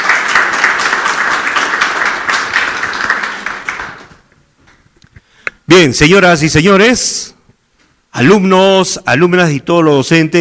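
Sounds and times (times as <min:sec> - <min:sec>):
audience applause: 0:00.0 - 0:04.3
speech: 0:05.8 - 0:07.3, 0:08.2 - 0:10.3.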